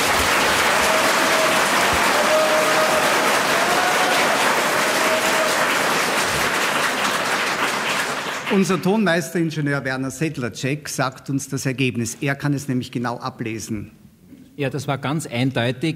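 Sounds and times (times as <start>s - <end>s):
audience applause: 0.0s - 9.0s
speech: 8.6s - 14.0s, 14.6s - 15.9s.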